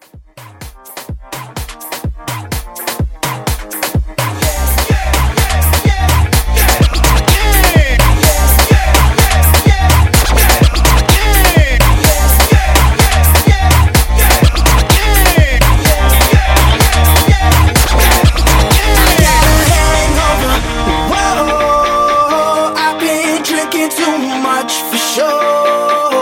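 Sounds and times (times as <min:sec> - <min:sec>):
afro hype music at 126 BPM: 0:00.0 - 0:26.2.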